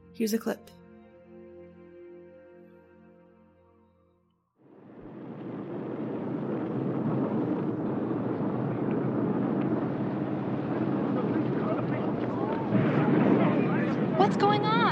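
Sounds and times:
speech: 0:00.2 - 0:00.8
Minuteman missiles launching rocket roar: 0:04.6 - 0:14.9.

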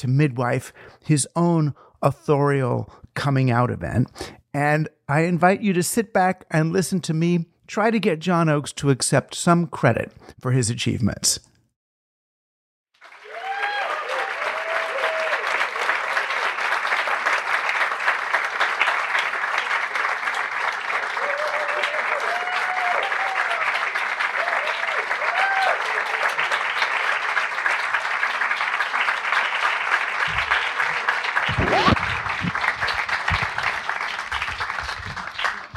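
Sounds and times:
speech: 0:00.0 - 0:11.5
audience applauding at the Strand Bookstore: 0:13.0 - 0:35.7
low thumps: 0:31.5 - 0:33.6.

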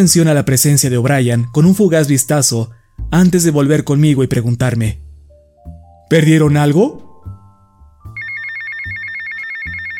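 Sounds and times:
speech: 0:00.0 - 0:05.0, 0:05.6 - 0:07.0
phone ringing: 0:08.1 - 0:09.9.

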